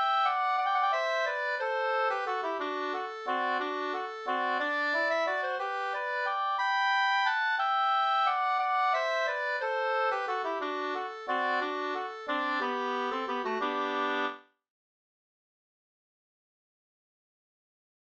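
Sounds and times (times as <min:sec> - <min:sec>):
waltz music: 0:00.0 - 0:14.4.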